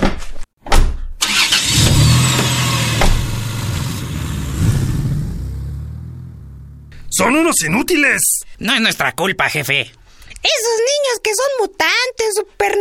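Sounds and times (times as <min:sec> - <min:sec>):
car engine cranking and starting: 0:01.2 - 0:07.2
speech: 0:07.2 - 0:12.7.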